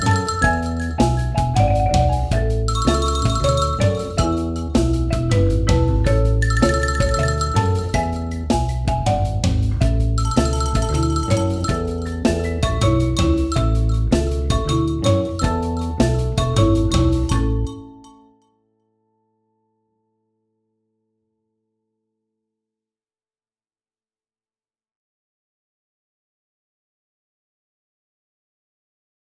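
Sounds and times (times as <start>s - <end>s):
marimba: 0.0s - 18.4s
xylophone: 0.0s - 18.4s.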